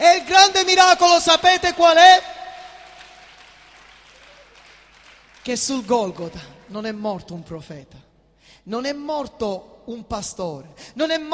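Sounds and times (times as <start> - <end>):
speech: 0.0 - 2.4, 5.5 - 11.3
congregation applauding in a church: 0.0 - 7.0.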